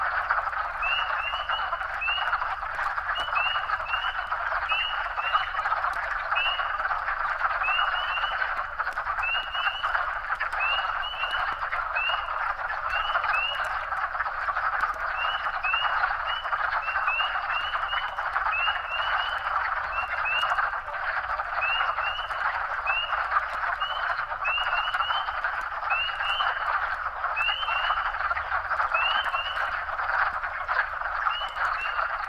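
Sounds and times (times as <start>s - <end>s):
group of wood frogs calling: 0.0s - 32.2s.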